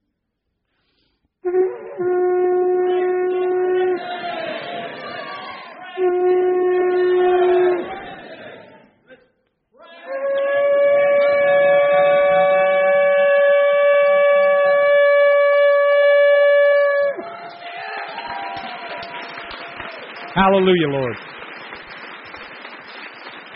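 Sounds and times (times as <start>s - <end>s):
horn blasts: 1.4s - 8.3s, 10.1s - 17.2s
speech: 20.5s - 21.3s.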